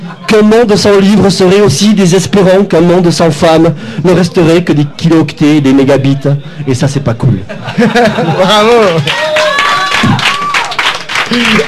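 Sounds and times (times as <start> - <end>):
speech: 0.1 - 10.2, 11.3 - 11.6
laughter: 7.4 - 9.1
audience applause: 8.7 - 11.6
whoops and cheering voices: 8.9 - 11.6.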